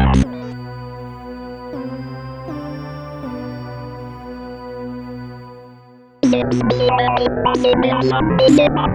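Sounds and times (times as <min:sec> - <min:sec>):
sample and hold synth effect: 0:00.2 - 0:08.8.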